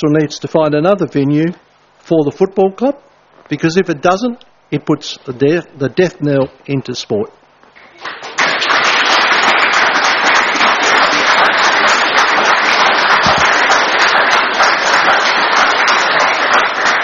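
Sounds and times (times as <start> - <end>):
speech: 0.0 - 7.4
crowd applauding: 7.8 - 17.0.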